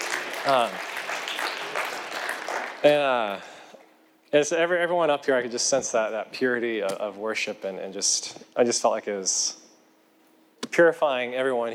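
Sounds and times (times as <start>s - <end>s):
crowd applause: 0.0s - 3.4s
speech: 0.4s - 0.9s, 2.8s - 3.5s, 4.3s - 9.6s, 10.7s - 11.7s.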